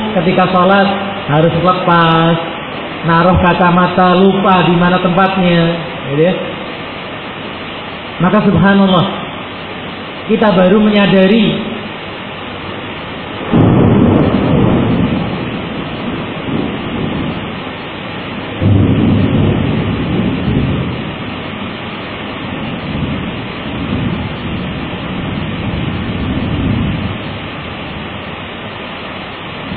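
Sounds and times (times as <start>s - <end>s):
thunder rumbling through a rainstorm: 0.0s - 7.0s, 13.0s - 28.5s, 29.5s - 29.7s
constant rain hiss: 0.0s - 29.7s
speech: 0.2s - 6.5s, 8.2s - 9.2s, 10.3s - 11.7s.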